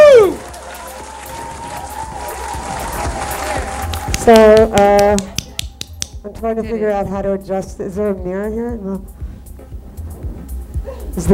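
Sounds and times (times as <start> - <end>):
audience applause: 0.0 - 4.8
speech: 4.2 - 5.2, 6.4 - 9.2, 11.2 - 11.3.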